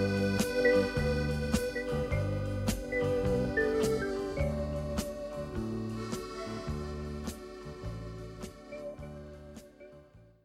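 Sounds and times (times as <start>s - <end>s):
accordion medley in G: 0.0s - 10.4s.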